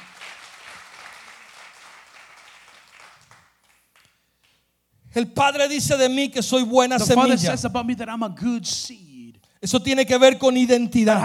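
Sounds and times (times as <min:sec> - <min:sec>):
audience applause: 0:00.0 - 0:04.1
speech: 0:05.2 - 0:11.2.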